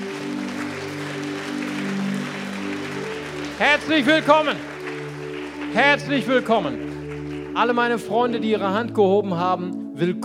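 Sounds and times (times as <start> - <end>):
audience applause: 0.0 - 8.0
sustained low keyboard chords: 0.0 - 10.2
speech: 3.6 - 4.7, 5.7 - 6.9, 7.6 - 10.2.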